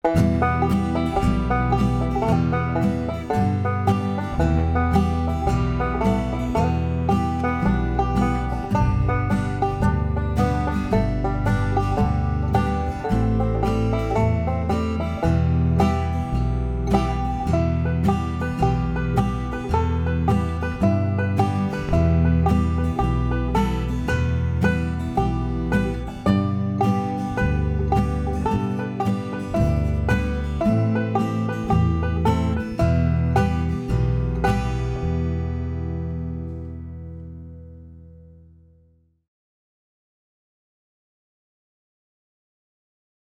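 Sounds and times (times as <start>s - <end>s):
5-string banjo played in natural style: 0.0s - 38.1s.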